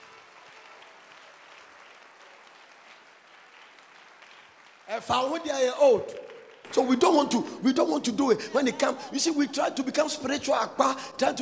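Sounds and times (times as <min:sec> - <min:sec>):
audience applause: 0:00.0 - 0:11.3
speech: 0:04.9 - 0:11.3
laughter: 0:07.6 - 0:11.3.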